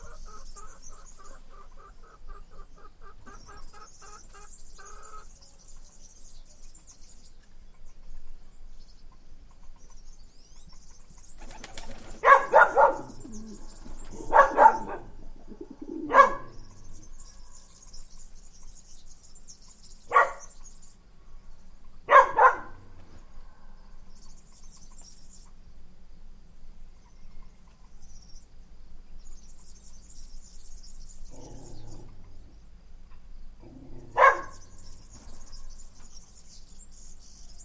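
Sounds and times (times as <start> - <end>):
birds: 0.0 - 37.6
dogs: 12.2 - 13.2, 14.1 - 15.1, 16.1 - 16.6, 20.1 - 20.6, 22.1 - 22.8, 34.0 - 34.6.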